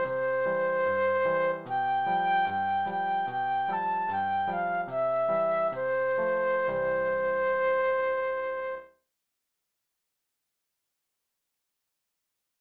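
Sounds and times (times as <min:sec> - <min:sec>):
flute solo: 0:00.0 - 0:09.0.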